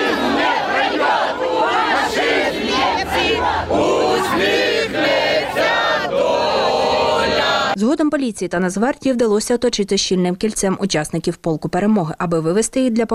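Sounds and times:
activists chanting slogans in a singing competition: 0:00.0 - 0:07.8
speech: 0:07.8 - 0:13.1.

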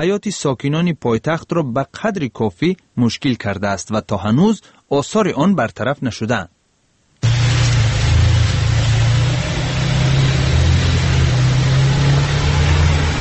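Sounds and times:
speech: 0:00.0 - 0:06.6
taxi engine straining: 0:07.2 - 0:13.1
taxi wheels spinning stuck in snow on a Dushanbe side street: 0:07.2 - 0:13.1.

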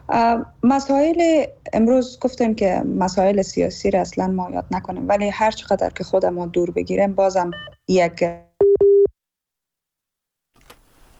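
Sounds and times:
speech: 0:00.1 - 0:08.9
phone busy tone after a call is cut off: 0:08.6 - 0:09.1.

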